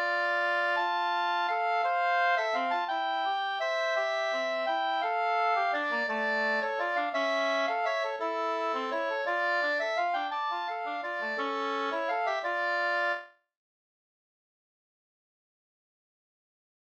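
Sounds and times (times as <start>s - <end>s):
minor key waltz: 0.0s - 13.3s.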